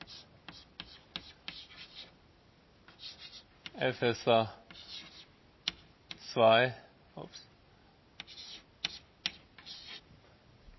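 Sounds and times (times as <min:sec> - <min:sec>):
pen strokes on paper jotting down notes: 0:00.0 - 0:02.1, 0:02.9 - 0:03.5, 0:04.7 - 0:05.8, 0:08.2 - 0:10.0
speech: 0:03.8 - 0:04.6, 0:06.3 - 0:07.5.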